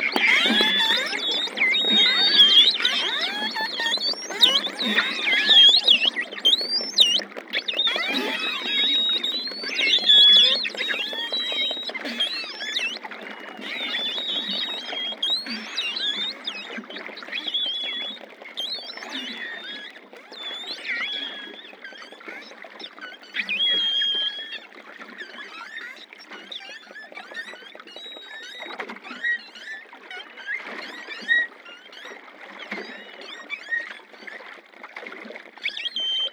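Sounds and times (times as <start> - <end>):
long-finned pilot whale whistles: 0.0 - 22.6, 23.3 - 24.7, 35.6 - 36.3.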